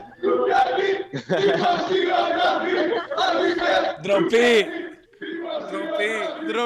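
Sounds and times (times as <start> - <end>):
laughter: 0.0 - 6.6
stadium crowd chanting slogans: 0.0 - 6.6
speech: 1.1 - 4.8, 5.7 - 6.6.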